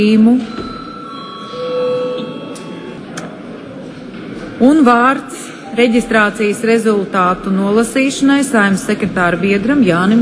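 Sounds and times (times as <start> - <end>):
speech: 0.0 - 0.7, 4.6 - 10.1
parliament session bell ringing: 0.4 - 3.0.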